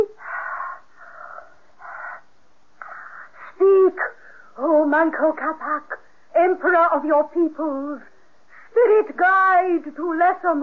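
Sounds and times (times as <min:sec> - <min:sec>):
heavy breathing: 0:00.1 - 0:04.6
speech: 0:04.9 - 0:08.1, 0:08.7 - 0:10.6.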